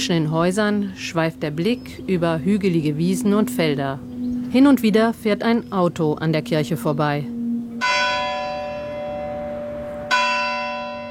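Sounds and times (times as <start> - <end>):
speech: 0.0 - 7.4
church bell striking the full hour: 7.7 - 11.1.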